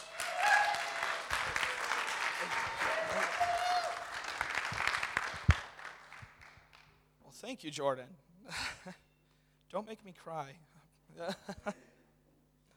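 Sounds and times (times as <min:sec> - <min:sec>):
audience applause welcoming a speaker onto the stage: 0:00.0 - 0:06.8
speech: 0:07.5 - 0:09.0, 0:09.7 - 0:11.9.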